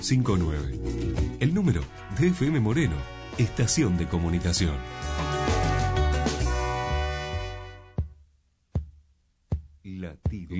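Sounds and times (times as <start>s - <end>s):
speech: 0.0s - 5.4s
bright music in a radio jingle: 0.0s - 8.0s
heartbeat sound effect in radio jingle: 7.9s - 10.5s.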